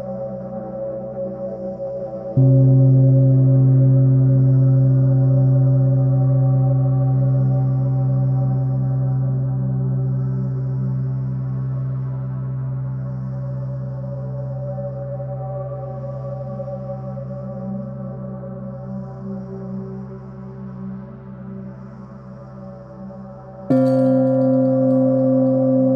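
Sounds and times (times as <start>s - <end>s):
space soundscape: 0.0s - 25.9s
gong: 2.4s - 10.1s, 23.7s - 25.9s.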